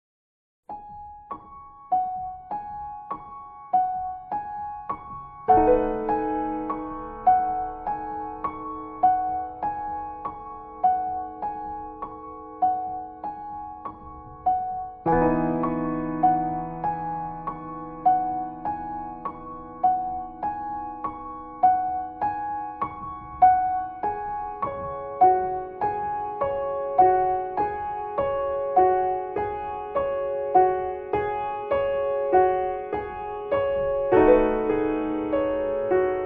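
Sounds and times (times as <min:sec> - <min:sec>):
piano cover: 0:00.7 - 0:36.2.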